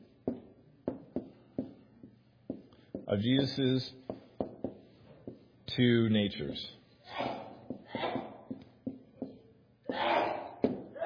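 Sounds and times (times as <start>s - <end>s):
speech: 3.1s - 4.0s, 5.8s - 7.3s
sneezes: 7.0s - 8.4s, 9.9s - 11.0s.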